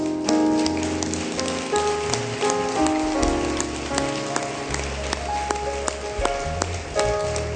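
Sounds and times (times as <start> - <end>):
crowd clapping: 0.0 - 7.5
keyboard or organ chords: 0.0 - 7.5
low bass line: 3.0 - 7.5.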